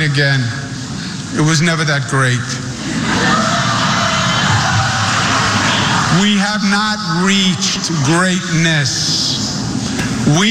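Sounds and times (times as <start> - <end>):
speech: 0.0 - 0.6, 1.3 - 3.4, 6.1 - 9.3, 10.3 - 10.5
crowd of progressive supporters shouting at a political speech: 2.9 - 6.3.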